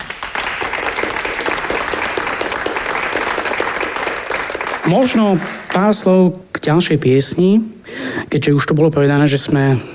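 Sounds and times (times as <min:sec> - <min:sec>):
audience applause: 0:00.0 - 0:06.0
speech: 0:04.9 - 0:09.9.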